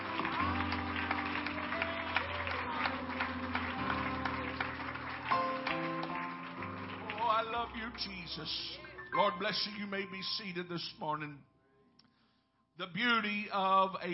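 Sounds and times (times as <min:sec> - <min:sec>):
audience clapping hands: 0:00.0 - 0:09.0
sustained keyboard chords: 0:00.0 - 0:11.5
speech: 0:07.6 - 0:11.5, 0:12.8 - 0:14.1.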